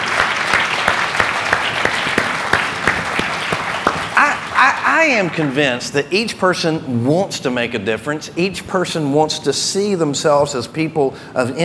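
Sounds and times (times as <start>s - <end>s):
audience applause: 0.0s - 5.6s
speech: 5.0s - 11.6s.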